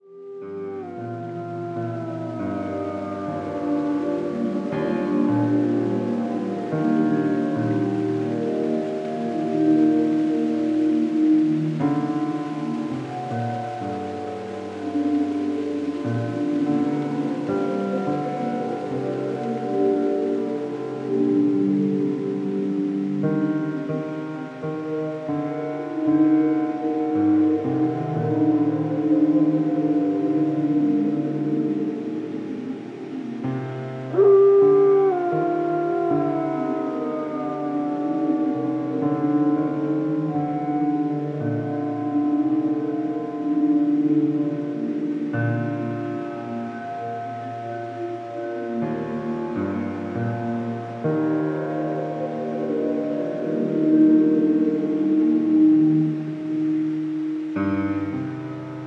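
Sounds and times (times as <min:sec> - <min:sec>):
falling rain: 0:00.0 - 0:58.8.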